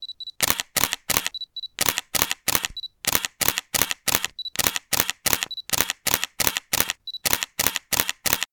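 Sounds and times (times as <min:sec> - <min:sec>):
camera shutter in serial mode: 0:00.4 - 0:08.5.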